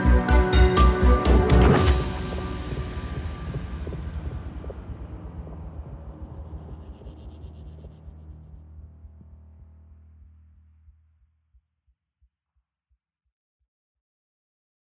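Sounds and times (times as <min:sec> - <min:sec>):
suspense thriller music: 0:00.0 - 0:11.0.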